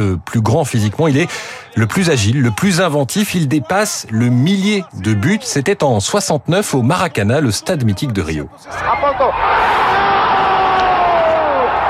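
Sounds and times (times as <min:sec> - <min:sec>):
speech: 0:00.1 - 0:10.0
stadium crowd cheering wildly: 0:08.7 - 0:11.8.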